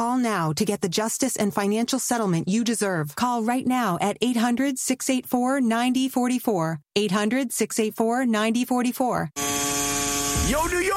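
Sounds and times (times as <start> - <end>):
speech: 0.0 - 9.9
tattoo machine buzzing at NYC Tattoo Shop in New York City: 9.4 - 10.7.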